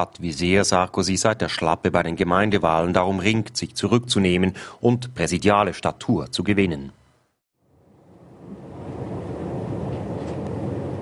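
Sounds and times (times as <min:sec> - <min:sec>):
speech: 0:00.0 - 0:07.0
regional train travelling in a wide curve past an airport: 0:08.3 - 0:11.0.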